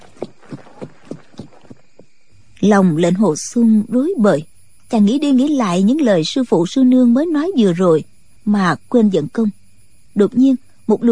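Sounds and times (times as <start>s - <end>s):
horse hooves galloping: 0.0s - 2.2s
speech: 2.6s - 9.6s, 10.2s - 11.1s.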